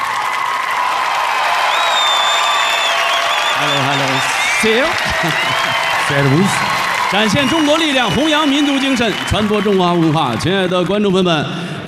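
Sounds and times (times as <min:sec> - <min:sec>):
audience clapping at a boxing event in Budapest: 0:00.0 - 0:11.6
crowd cheering at a boxing event in Budapest: 0:00.0 - 0:11.8
laughter: 0:03.5 - 0:10.4
speech: 0:03.6 - 0:11.7.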